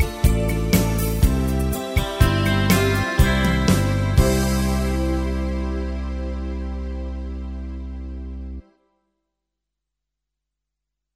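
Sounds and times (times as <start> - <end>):
Scandinavian beat: 0.0 - 6.5.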